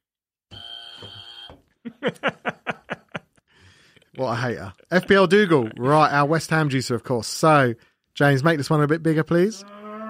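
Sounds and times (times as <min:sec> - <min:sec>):
quiz buzzer being pressed: 0:00.5 - 0:01.6
rhythmic laughter: 0:01.8 - 0:03.4
speech: 0:02.0 - 0:02.6, 0:04.2 - 0:09.8.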